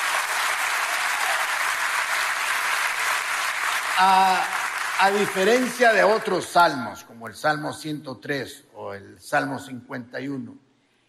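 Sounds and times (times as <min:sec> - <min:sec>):
audience applause: 0:00.0 - 0:06.5
speech: 0:04.0 - 0:10.6.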